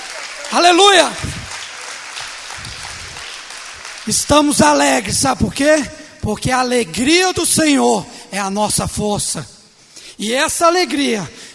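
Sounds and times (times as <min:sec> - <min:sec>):
audience applause: 0:00.0 - 0:05.0
speech: 0:00.5 - 0:01.4, 0:04.0 - 0:09.5, 0:10.2 - 0:11.4.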